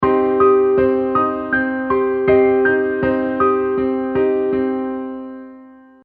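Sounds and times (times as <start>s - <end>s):
piano version of a toy melody: 0.0s - 6.0s.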